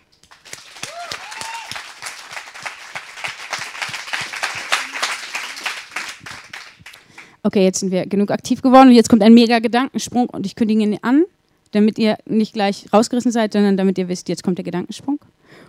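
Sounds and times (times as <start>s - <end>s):
crowd applauding: 0.2s - 7.3s
whoops and cheers: 0.8s - 2.0s
speech: 7.4s - 15.6s.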